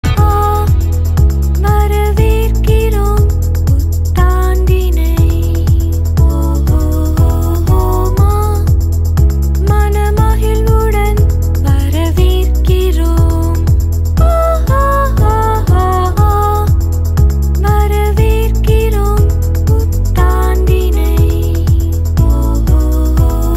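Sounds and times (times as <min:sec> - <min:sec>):
Tamil ringtone: 0:00.0 - 0:23.5.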